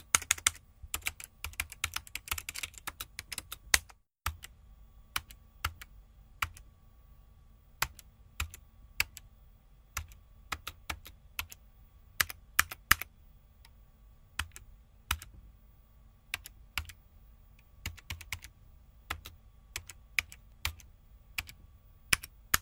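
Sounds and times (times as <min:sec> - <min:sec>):
typing sound effect: 0:00.0 - 0:04.5, 0:07.8 - 0:09.2, 0:10.0 - 0:11.6, 0:12.2 - 0:13.1, 0:14.4 - 0:15.3, 0:16.3 - 0:17.0, 0:17.8 - 0:18.5, 0:19.1 - 0:22.6.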